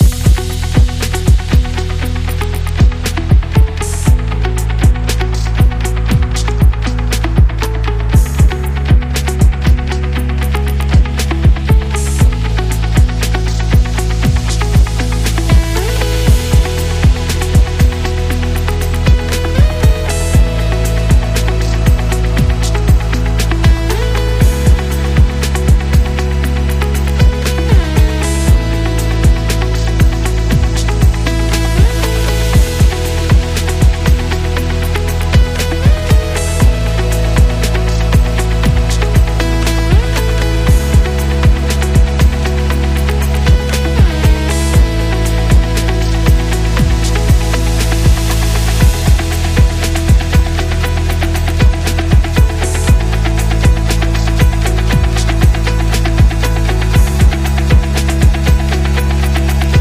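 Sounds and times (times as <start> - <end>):
motivational corporate music: 0.0 - 59.7.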